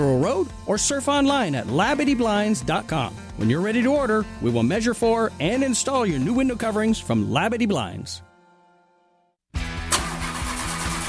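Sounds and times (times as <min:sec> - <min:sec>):
speech: 0:00.0 - 0:08.3
car engine struggling to start: 0:09.8 - 0:11.0.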